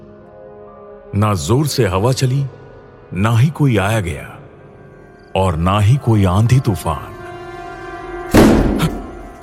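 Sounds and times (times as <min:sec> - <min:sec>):
speech: 0:01.1 - 0:04.3, 0:05.3 - 0:07.1
open door slamming shut: 0:08.3 - 0:09.2.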